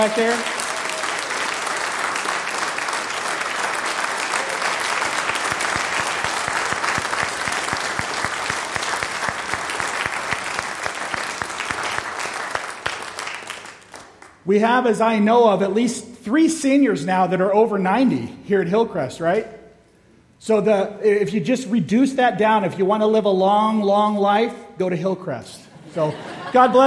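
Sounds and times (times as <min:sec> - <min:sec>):
speech: 0:00.0 - 0:00.6, 0:14.5 - 0:19.6, 0:20.4 - 0:26.8
audience applause: 0:00.0 - 0:14.3
laughter: 0:25.8 - 0:26.8.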